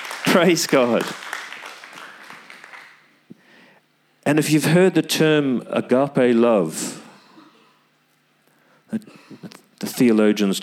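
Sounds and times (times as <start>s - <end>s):
audience clapping: 0.0s - 3.2s
speech: 0.4s - 1.4s, 4.3s - 7.0s, 8.9s - 10.6s.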